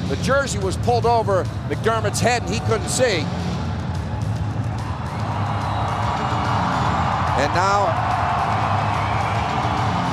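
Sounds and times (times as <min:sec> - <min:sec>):
speech: 0:00.1 - 0:03.5, 0:07.4 - 0:08.1
hockey crowd roaring: 0:04.7 - 0:10.1.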